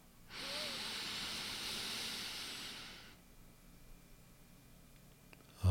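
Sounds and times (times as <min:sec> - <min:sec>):
soft airy breath: 0:00.3 - 0:03.2.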